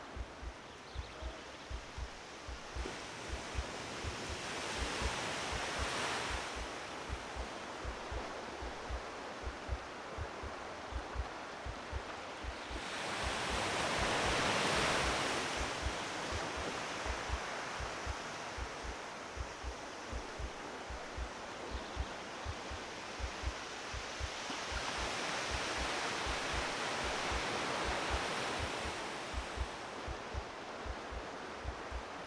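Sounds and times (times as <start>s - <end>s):
waves on a beach: 0.0s - 32.2s.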